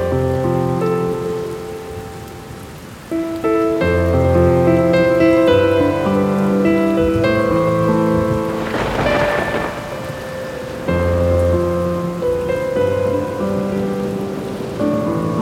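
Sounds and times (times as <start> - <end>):
piano: 0.0 - 15.4
rain noise: 0.0 - 15.4.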